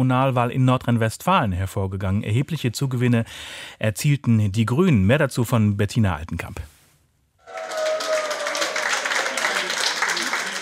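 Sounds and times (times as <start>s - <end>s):
speech: 0.0s - 6.7s
cheering and applause at election party: 7.4s - 10.5s.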